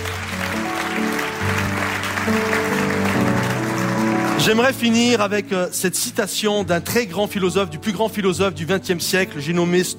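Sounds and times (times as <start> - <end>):
audience applause: 0.0 - 5.0
speech: 2.3 - 2.6, 4.4 - 9.9.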